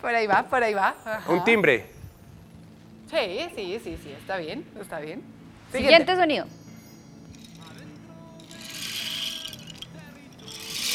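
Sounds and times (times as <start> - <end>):
speech: 0.0 - 2.0, 3.1 - 6.6
homemade shaker filled with seeds: 7.3 - 10.9.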